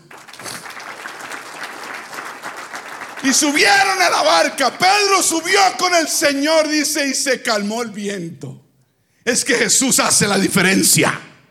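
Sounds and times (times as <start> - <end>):
audience applauding: 0.0 - 5.3
speech: 3.2 - 8.5, 9.3 - 11.3.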